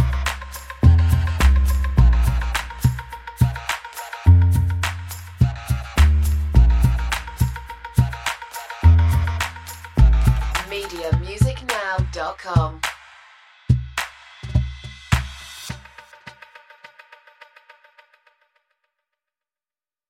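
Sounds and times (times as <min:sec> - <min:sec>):
bass: 0:00.0 - 0:12.9
drums: 0:00.0 - 0:16.4.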